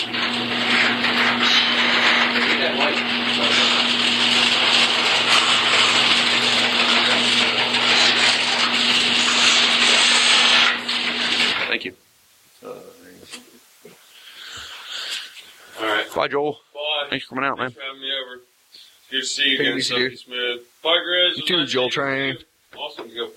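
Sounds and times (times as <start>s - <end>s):
garage door opening with motor hum: 0.0s - 11.7s
speech: 16.4s - 18.5s, 19.1s - 23.3s.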